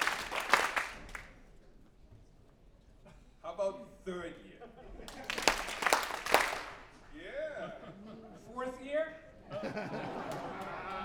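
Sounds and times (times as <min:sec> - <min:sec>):
audience clapping: 0:00.0 - 0:01.5, 0:05.0 - 0:07.2, 0:09.7 - 0:11.0
laughter: 0:04.5 - 0:06.5, 0:07.2 - 0:11.0.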